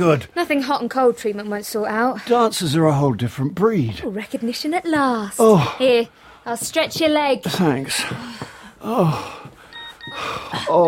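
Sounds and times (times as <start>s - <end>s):
speech: 0.0s - 9.4s, 10.1s - 10.8s
mobile phone message alert: 9.7s - 10.8s.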